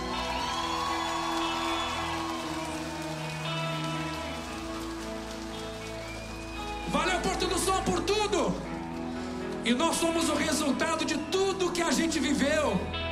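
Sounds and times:
audience applause for a performer at a live event: 0.0 - 9.7
speech: 9.6 - 13.1.

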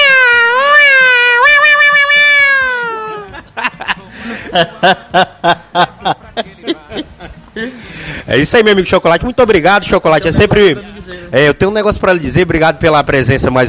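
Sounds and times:
person imitating a cat meowing: 0.0 - 3.2
person laughing: 1.9 - 7.8
speech: 4.5 - 6.5, 8.3 - 13.6.

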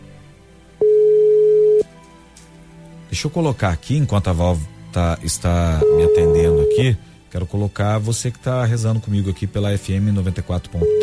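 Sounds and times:
telephone ringback tone while a call is placed: 0.8 - 1.9, 5.8 - 6.8, 10.8 - 11.0
speech: 3.1 - 11.0.

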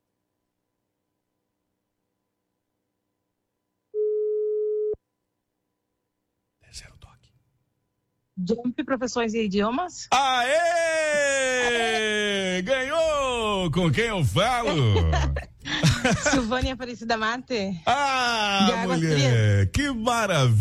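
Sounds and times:
telephone ringing tone during a call to a radio listener for a prize: 3.9 - 5.0
speech: 8.4 - 10.9, 12.6 - 15.4, 16.0 - 20.5
laughter: 10.1 - 16.8, 17.9 - 20.5.

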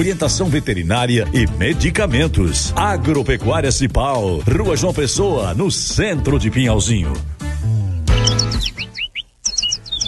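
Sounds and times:
speech: 0.0 - 7.3
small bird singing: 8.1 - 10.0.

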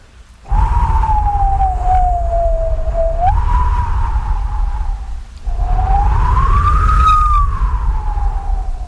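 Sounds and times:
low rumble: 0.4 - 8.8
voice imitating howling wind: 0.5 - 8.8.

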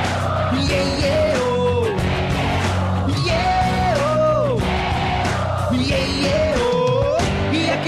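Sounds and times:
concert crowd cheering and yelling: 0.0 - 7.8
music: 0.0 - 7.8
speech: 0.5 - 1.2
person singing: 0.5 - 2.0, 3.1 - 4.6, 5.7 - 7.8.

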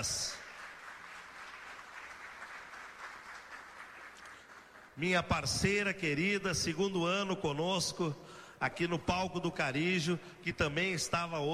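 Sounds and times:
speech: 0.0 - 0.2, 5.0 - 11.5
applause: 0.0 - 5.6.

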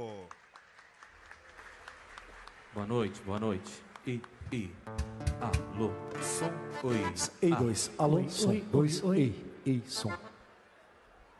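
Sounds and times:
audience applause: 0.0 - 4.4
speech: 2.8 - 10.3.

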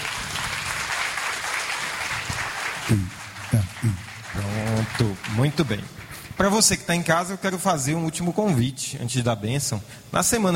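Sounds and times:
audience applause: 0.0 - 6.4
speech: 2.9 - 10.5.

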